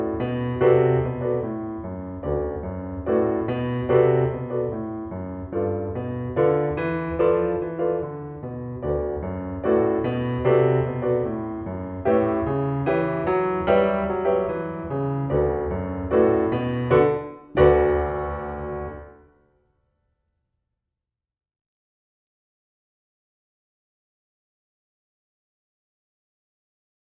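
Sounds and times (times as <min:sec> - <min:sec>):
boogie woogie piano: 0:00.0 - 0:19.3.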